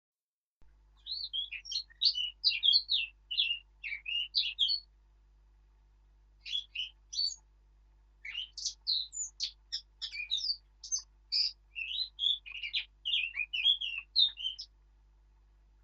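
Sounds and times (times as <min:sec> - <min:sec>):
Eurasian blackcap Sylvia atricapilla song: 0:01.0 - 0:04.9, 0:06.4 - 0:07.5, 0:08.2 - 0:14.8.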